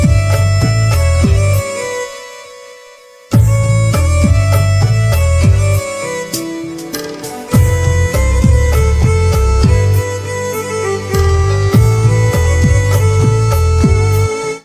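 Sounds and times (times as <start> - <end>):
harmonica instrumental ringtone: 0.0 - 14.6.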